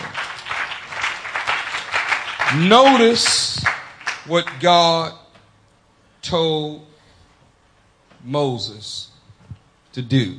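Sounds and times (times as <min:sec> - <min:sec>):
audience clapping hands: 0:00.0 - 0:04.7
speech: 0:02.5 - 0:05.2, 0:06.2 - 0:06.9, 0:08.2 - 0:09.1, 0:10.0 - 0:10.3.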